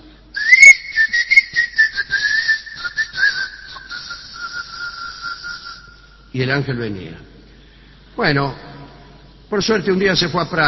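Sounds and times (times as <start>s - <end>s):
person whistling a tune: 0.4s - 6.2s
speech: 6.4s - 7.3s, 8.2s - 8.7s, 9.5s - 10.6s.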